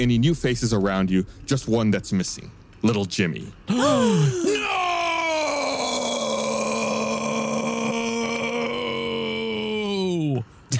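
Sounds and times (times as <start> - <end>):
speech: 0.0 - 4.7
yell turning into a burp: 3.7 - 10.0.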